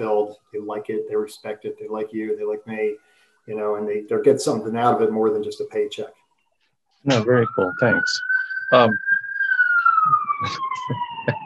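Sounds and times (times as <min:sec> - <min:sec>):
speech: 0:00.0 - 0:06.2, 0:07.0 - 0:09.1, 0:10.0 - 0:11.4
fire truck siren wailing: 0:07.1 - 0:11.4.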